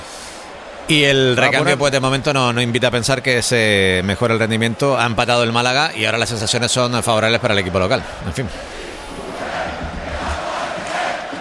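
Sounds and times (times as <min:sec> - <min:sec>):
football crowd chanting in a stadium during a Málaga match: 0:00.0 - 0:02.7, 0:07.0 - 0:11.3
speech: 0:00.9 - 0:08.9.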